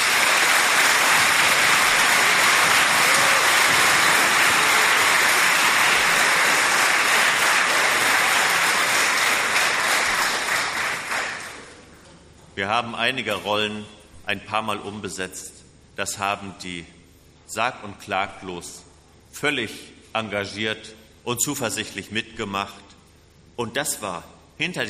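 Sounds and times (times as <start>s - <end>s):
audience applause in church: 0.0s - 11.8s
speech: 12.6s - 22.9s, 23.6s - 24.8s.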